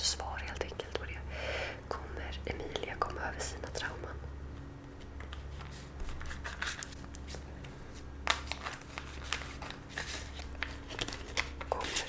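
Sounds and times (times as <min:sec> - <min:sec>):
low hum: 0:00.0 - 0:12.0
deck of cards shuffling: 0:04.9 - 0:12.0.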